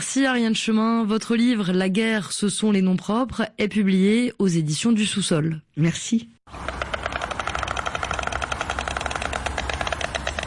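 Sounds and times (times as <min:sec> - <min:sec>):
speech: 0:00.0 - 0:06.8
stork bill clattering: 0:06.5 - 0:10.4.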